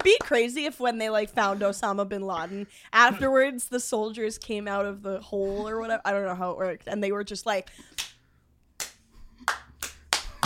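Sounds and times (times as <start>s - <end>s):
speech: 0.0s - 8.0s
slow clap: 7.9s - 10.4s.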